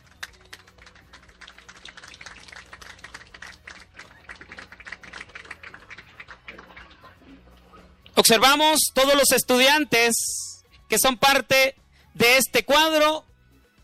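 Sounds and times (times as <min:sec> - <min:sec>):
audience applause: 0:00.0 - 0:07.3
speech: 0:08.3 - 0:13.3.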